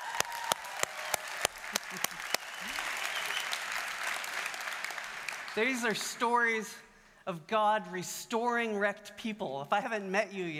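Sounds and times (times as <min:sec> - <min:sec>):
audience applause: 0:00.0 - 0:06.2
speech: 0:05.6 - 0:10.5.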